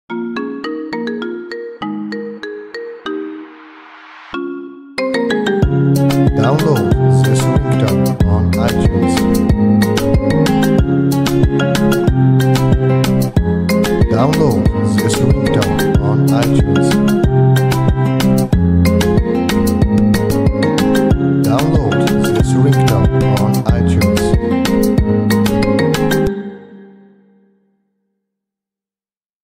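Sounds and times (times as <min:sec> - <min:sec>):
marimba: 0:00.1 - 0:26.9.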